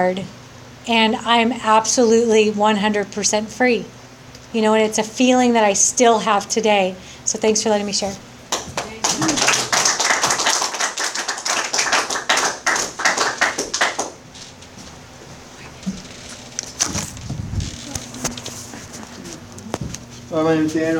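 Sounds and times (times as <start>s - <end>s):
speech: 0.0s - 8.3s, 20.4s - 20.9s
audience applause: 8.5s - 14.2s.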